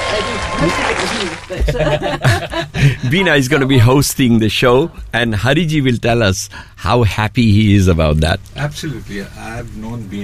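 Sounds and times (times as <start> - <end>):
clapping: 0.0 - 1.6
speech: 0.2 - 10.2
laughter: 0.5 - 4.0.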